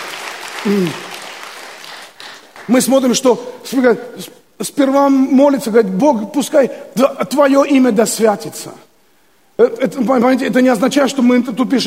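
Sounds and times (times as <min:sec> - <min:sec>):
audience applause: 0:00.0 - 0:02.8
speech: 0:00.6 - 0:01.1, 0:02.7 - 0:08.9, 0:09.6 - 0:11.8.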